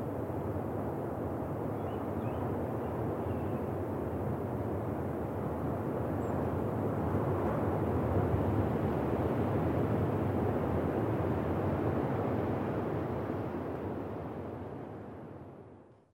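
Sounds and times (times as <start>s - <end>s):
wind in a forest: 0.0s - 16.1s.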